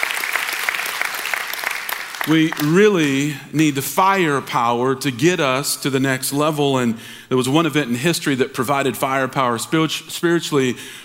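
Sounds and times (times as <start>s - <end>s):
audience clapping: 0.0s - 3.3s
speech: 2.3s - 11.0s.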